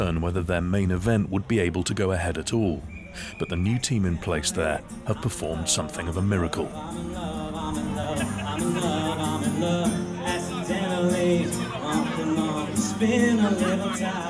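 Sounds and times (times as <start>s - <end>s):
crowd hubbub at an outdoor pride festival: 0.0s - 14.2s
speech: 0.1s - 10.1s, 12.9s - 14.2s
laughter: 4.5s - 14.2s.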